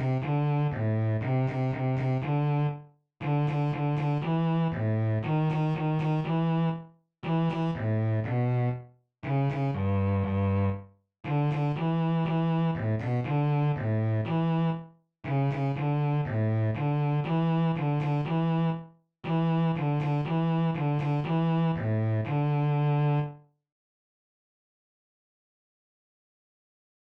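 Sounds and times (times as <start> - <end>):
bass sightreading notes in second and third position: 0.0 - 23.3.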